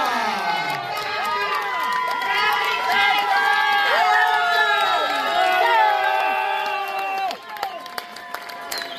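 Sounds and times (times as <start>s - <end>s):
audience applause: 0.0s - 8.9s.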